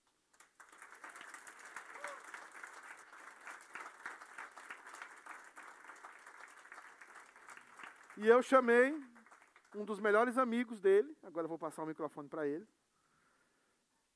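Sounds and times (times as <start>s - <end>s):
church audience applauding: 0.0s - 10.6s
speech: 8.2s - 9.1s, 9.8s - 12.8s.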